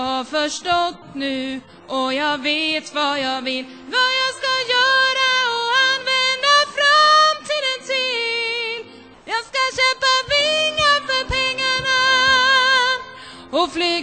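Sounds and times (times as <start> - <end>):
soprano vocal parts singing: 0.0 - 14.0.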